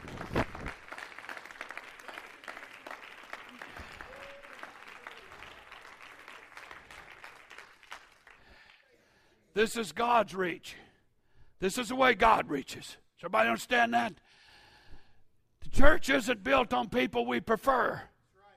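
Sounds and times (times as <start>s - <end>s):
audience clapping hands: 0.0s - 9.0s
speech: 9.6s - 10.8s, 11.6s - 14.2s, 15.8s - 18.1s.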